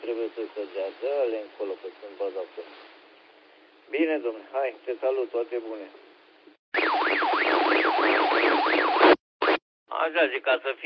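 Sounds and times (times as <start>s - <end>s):
speech: 0.3s - 3.0s, 3.9s - 6.1s, 10.0s - 10.8s
Baofeng handheld radio alarm tone: 6.8s - 9.6s.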